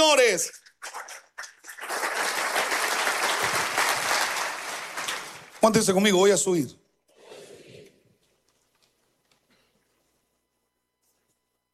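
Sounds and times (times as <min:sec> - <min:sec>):
speech: 0:00.1 - 0:00.6, 0:05.6 - 0:06.8
crowd applauding: 0:00.8 - 0:05.7.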